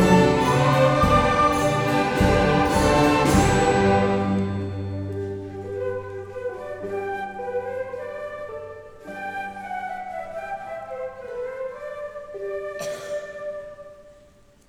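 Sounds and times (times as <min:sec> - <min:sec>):
orchestra playing Christmas music: 0:00.0 - 0:09.4.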